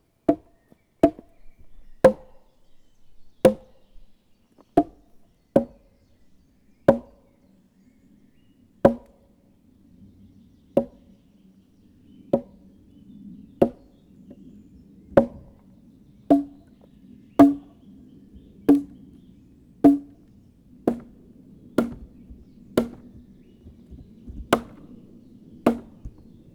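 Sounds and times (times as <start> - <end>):
club striking logs as wood percussion: 0.3 - 2.5, 3.4 - 3.8, 4.8 - 6.0, 6.9 - 7.2, 8.8 - 9.2, 10.8 - 11.1, 12.3 - 12.7, 13.6 - 13.9, 15.2 - 15.6, 16.3 - 19.2, 19.8 - 26.5.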